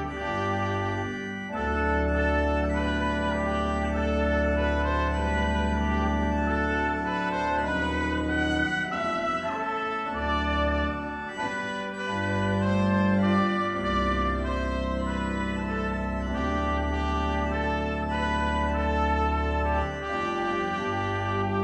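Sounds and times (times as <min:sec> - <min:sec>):
organ music: 0:00.0 - 0:21.6.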